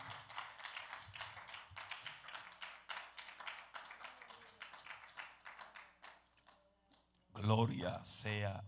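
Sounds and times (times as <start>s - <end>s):
applause, hands clapping: 0.0s - 7.1s
speech: 7.4s - 8.6s.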